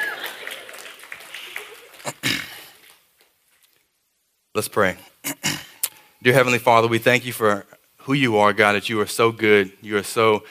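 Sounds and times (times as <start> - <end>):
crowd clapping: 0.0 - 3.0
speech: 4.6 - 5.4, 6.2 - 10.5.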